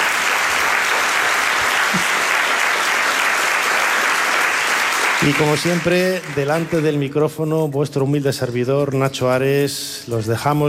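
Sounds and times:
audience applause: 0.0 - 7.1
speech: 5.2 - 10.6.

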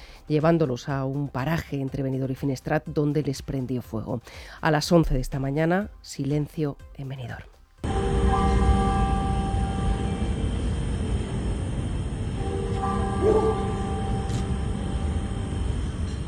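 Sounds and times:
speech: 0.3 - 7.6
bells ringing: 7.8 - 16.2.

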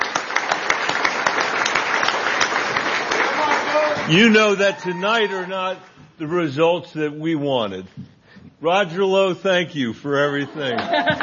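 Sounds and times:
audience applause: 0.0 - 5.8
speech: 4.1 - 8.0, 8.6 - 11.2
laughter: 10.3 - 11.2.

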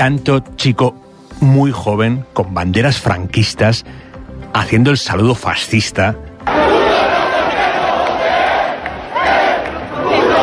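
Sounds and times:
speech: 0.0 - 6.6
crowd shouting and chanting insults at protest camp: 6.4 - 10.4.

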